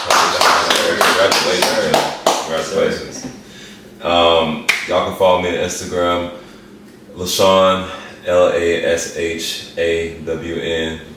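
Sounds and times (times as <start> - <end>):
people clapping: 0.0 - 2.9
speech: 2.5 - 3.4, 4.0 - 6.4, 7.2 - 11.1.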